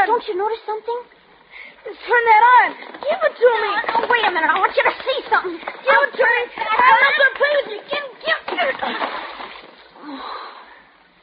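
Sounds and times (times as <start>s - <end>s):
speech: 0.0s - 1.2s, 1.8s - 9.3s, 10.0s - 10.5s
object dropped into water splashing: 8.4s - 9.9s.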